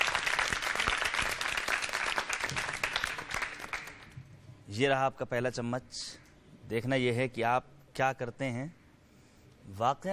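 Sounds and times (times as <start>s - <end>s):
audience applause welcoming a team: 0.0s - 4.2s
speech: 4.7s - 8.8s, 9.6s - 10.1s.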